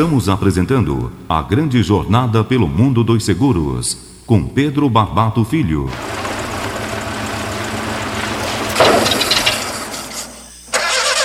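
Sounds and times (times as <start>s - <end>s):
speech: 0.0s - 6.4s
car engine failing to start: 5.9s - 11.2s.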